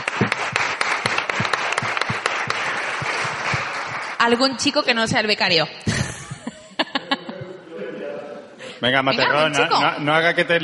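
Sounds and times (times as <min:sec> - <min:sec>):
audience applause: 0:00.0 - 0:04.8
speech: 0:04.2 - 0:05.9, 0:08.8 - 0:10.6
laughter: 0:05.8 - 0:08.8.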